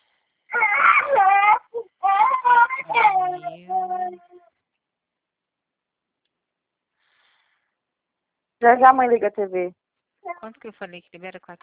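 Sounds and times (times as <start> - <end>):
child screaming: 0.5 - 4.4
speech: 8.6 - 9.8, 10.4 - 11.6.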